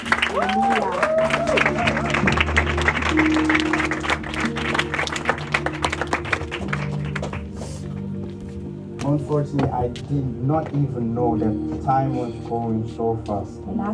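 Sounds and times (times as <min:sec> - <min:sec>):
people clapping: 0:00.0 - 0:08.3
speech: 0:09.4 - 0:13.9.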